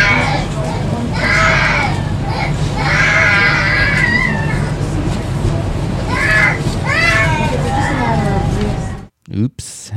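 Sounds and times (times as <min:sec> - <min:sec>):
baby crying: 0:00.0 - 0:00.5, 0:01.2 - 0:04.7, 0:06.1 - 0:08.2
low hum: 0:00.0 - 0:09.9.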